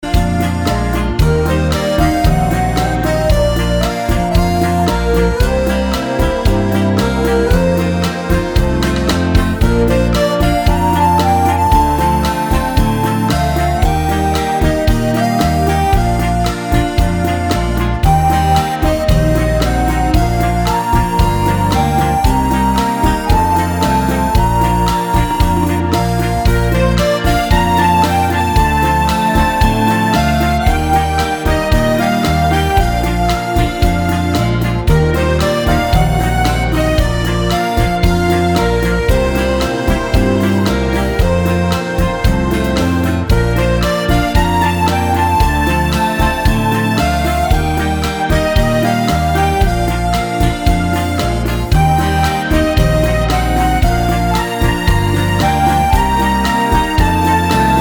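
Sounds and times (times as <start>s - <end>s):
bachata music mix: 0.0s - 57.7s.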